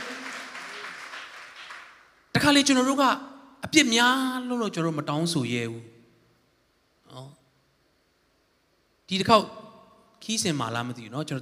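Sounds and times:
congregation clapping hands in praise during a church service: 0.0 - 2.2
speech: 2.4 - 5.9, 7.1 - 7.4, 9.1 - 9.6, 10.2 - 11.3.

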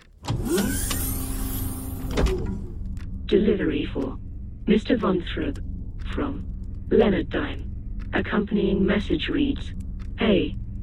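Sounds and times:
automatic door sliding open with electric motor whir: 0.0 - 3.0
automatic door clunk: 1.8 - 2.8
speech: 3.3 - 10.6.

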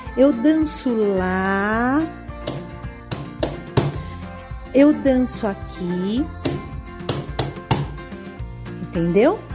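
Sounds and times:
speech: 0.2 - 2.2, 4.7 - 6.4, 9.0 - 9.5
four hand claps to each side of the body: 2.4 - 4.0, 6.4 - 8.0.

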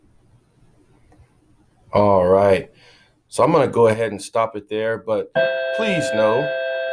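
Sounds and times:
speech: 1.9 - 2.7, 3.3 - 6.6
bell ringing: 5.4 - 6.8.

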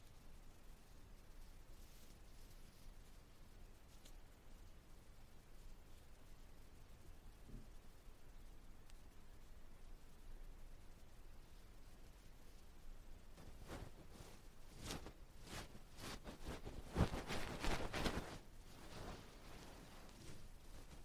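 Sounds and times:
faint soft rustle: 0.0 - 21.0
brushing dust off the ear: 13.3 - 21.0.

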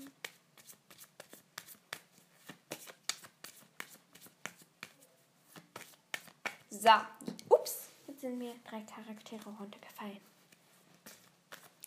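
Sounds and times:
playing cards being shuffled: 0.2 - 6.7, 10.4 - 11.8
speech: 6.8 - 10.4.

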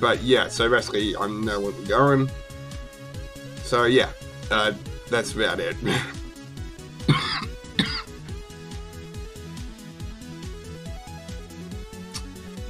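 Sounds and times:
speech: 0.0 - 2.4, 3.7 - 6.2
coughing: 5.8 - 6.2, 7.0 - 8.3.

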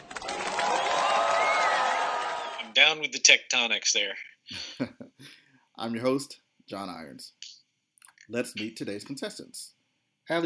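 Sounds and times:
inserted applause sound effect: 0.0 - 2.7
speech: 2.8 - 5.0, 5.8 - 7.5, 8.3 - 10.4.

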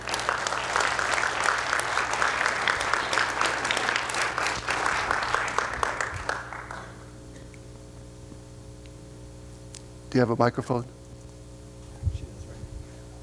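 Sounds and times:
round of applause: 0.0 - 7.2
speech: 10.2 - 11.0.

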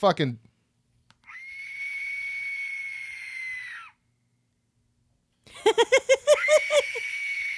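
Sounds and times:
Aztec death whistle: 1.3 - 4.0
laughter: 5.5 - 7.0.

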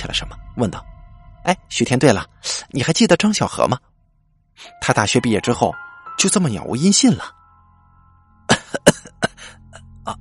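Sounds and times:
speech: 0.2 - 3.9, 4.6 - 7.4
coughing after choking on a drink: 8.5 - 10.2.

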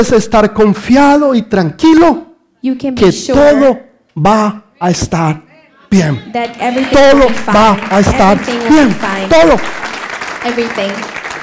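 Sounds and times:
speech: 0.0 - 11.2
audience applause: 6.4 - 11.4.

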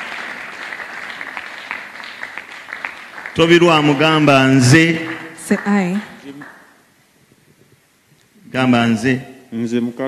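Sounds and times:
audience clapping: 0.0 - 6.8
speech: 3.4 - 6.1, 8.6 - 10.0.

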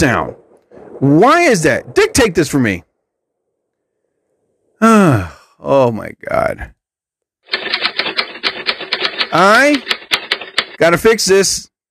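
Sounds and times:
speech: 0.0 - 0.4, 1.0 - 2.9, 4.8 - 6.8, 9.3 - 10.0, 10.8 - 11.7
typewriter typing sound effect from soundboard: 7.5 - 10.9.

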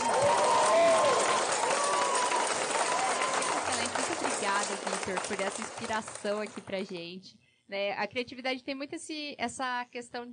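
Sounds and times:
applause: 0.0 - 7.0
speech: 5.1 - 10.3.

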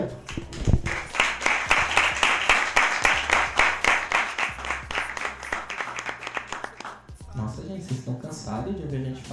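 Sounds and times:
crowd clapping: 0.2 - 7.2
speech: 8.6 - 9.3.

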